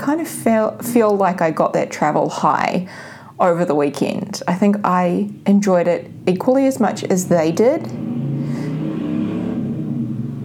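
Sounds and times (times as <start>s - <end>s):
speech: 0.1s - 8.1s
motorcycle going past: 6.1s - 10.4s.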